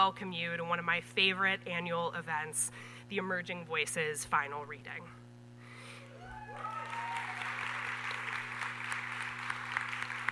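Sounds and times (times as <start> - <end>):
speech: 0.0 - 5.2
faint low hum: 0.0 - 10.3
room full of people applauding: 6.4 - 10.3.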